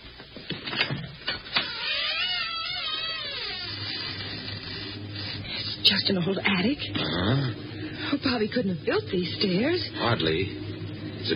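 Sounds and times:
old door creaking open: 0.7 - 5.7
speech: 5.9 - 10.6.

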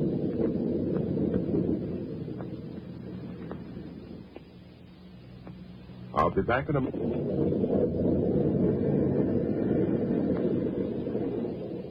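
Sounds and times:
wind in a storm at sea aboard a boat, radio drama effect: 0.0 - 4.4, 6.1 - 11.9
speech: 6.3 - 9.4.

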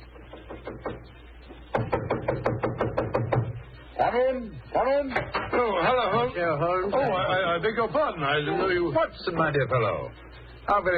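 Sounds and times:
knocking on a door: 0.3 - 1.1, 1.7 - 3.6
speech: 4.1 - 10.9.

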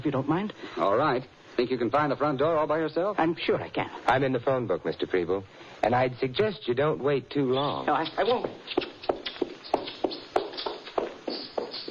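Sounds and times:
speech: 0.0 - 8.9
hurried hard-soled footsteps: 7.9 - 11.8.

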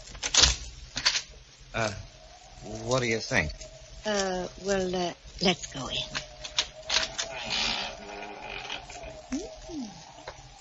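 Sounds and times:
speech: 1.8 - 6.2
door creaking as it swings: 6.0 - 10.4.

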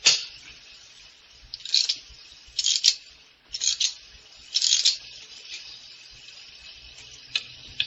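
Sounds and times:
clock being rewound: 1.6 - 2.0, 2.6 - 3.0, 3.6 - 5.0.

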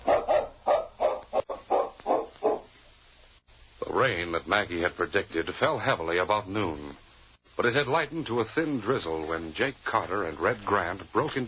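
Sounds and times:
tracking dog barking: 0.0 - 2.7
speech: 4.0 - 7.0, 7.6 - 11.4.

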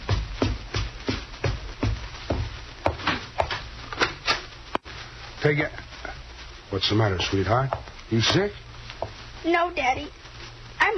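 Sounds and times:
footsteps running upstairs: 0.0 - 4.5, 6.8 - 10.2
speech: 5.4 - 5.8, 6.7 - 8.6, 9.4 - 10.2.

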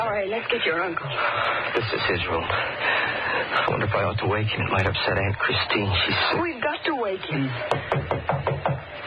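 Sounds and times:
speech: 0.2 - 8.6
knocking on a door: 7.7 - 8.9.

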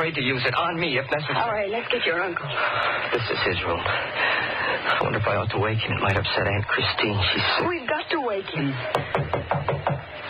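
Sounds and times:
speech: 0.0 - 9.9
knocking on a door: 8.9 - 10.1.

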